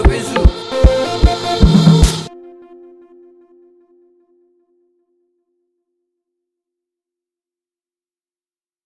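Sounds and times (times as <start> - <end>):
beat: 0.0 - 2.3.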